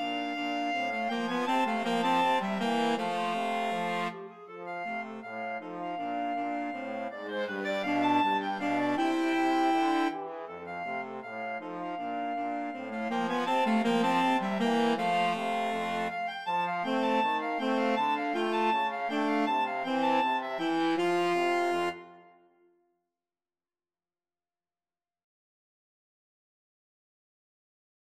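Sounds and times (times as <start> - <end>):
flexible mixed ensemble of three players: 0.0 - 22.3.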